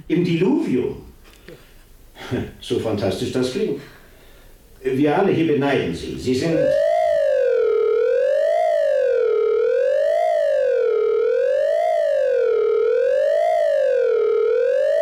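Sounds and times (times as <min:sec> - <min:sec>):
speech: 0:00.1 - 0:01.1, 0:02.3 - 0:04.0, 0:04.8 - 0:06.9
alarm siren wailing: 0:06.3 - 0:14.9.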